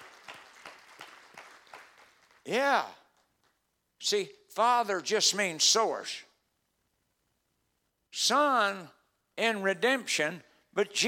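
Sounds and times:
crowd applauding: 0.0s - 2.6s
speech: 2.4s - 3.0s, 4.0s - 6.3s, 8.1s - 11.0s.

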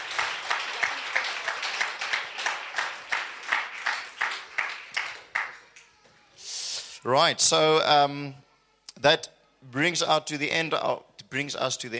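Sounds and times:
crowd applauding: 0.0s - 6.0s
speech: 7.0s - 8.4s, 9.0s - 11.9s.

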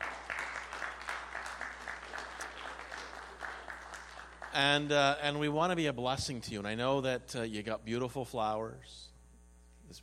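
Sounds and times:
audience applause: 0.0s - 5.1s
speech: 4.5s - 9.1s, 9.9s - 10.0s.

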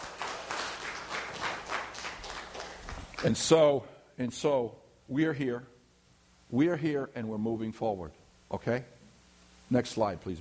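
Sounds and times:
audience applause: 0.0s - 3.4s
speech: 3.2s - 5.7s, 6.5s - 9.0s, 9.7s - 10.4s.

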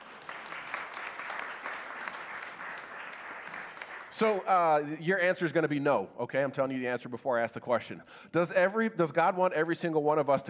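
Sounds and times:
audience applause: 0.0s - 4.6s
speech: 4.2s - 10.4s.

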